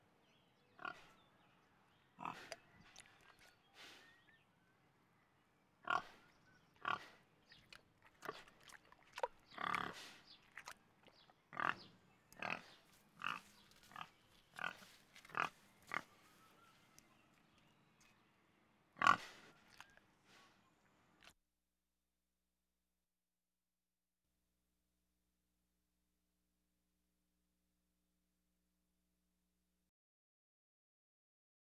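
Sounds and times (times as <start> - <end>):
pig grunting and snuffling: 0.8 - 1.2, 2.2 - 4.2, 5.8 - 16.9, 19.0 - 20.6.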